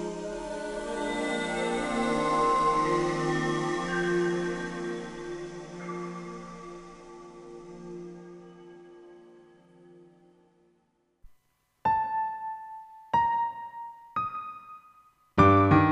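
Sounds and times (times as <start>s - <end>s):
pad with piano through PCM60 reverb: 0.0s - 10.7s
piano through PCM60 reverb: 0.0s - 10.7s, 11.8s - 15.8s.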